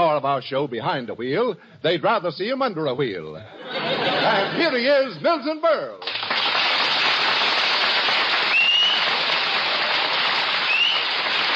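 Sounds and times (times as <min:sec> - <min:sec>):
speech: 0:00.2 - 0:06.2
laughter: 0:03.4 - 0:05.1
dense applause from a large crowd: 0:06.0 - 0:11.5
high rising whistles: 0:08.5 - 0:09.1, 0:10.7 - 0:11.1.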